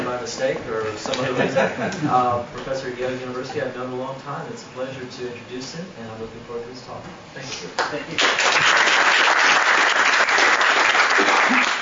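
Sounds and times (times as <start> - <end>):
speech: 0.2 - 9.2
laughter: 1.2 - 2.3
audience applause: 8.2 - 11.7.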